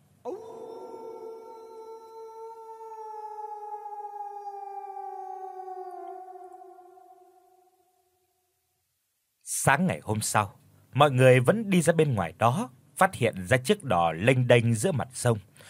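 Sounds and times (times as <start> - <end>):
dog howling at night: 0.2 - 8.2
speech: 9.6 - 15.6.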